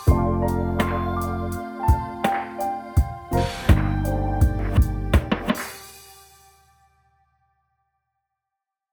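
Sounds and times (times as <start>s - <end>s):
lofi jazz music: 0.0s - 5.7s.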